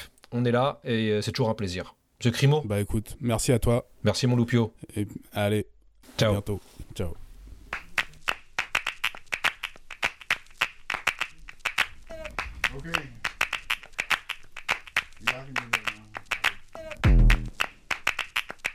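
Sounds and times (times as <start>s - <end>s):
speech: 0.3s - 7.2s, 12.8s - 13.2s
rhythmic handclapping in a song: 7.7s - 18.7s.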